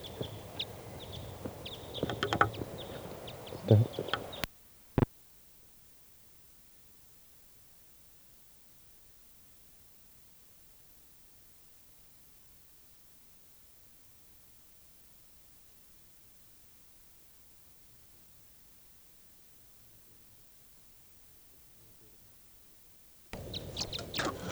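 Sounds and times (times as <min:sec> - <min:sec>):
birds chirping outdoors: 0:00.0 - 0:04.5, 0:23.4 - 0:24.5.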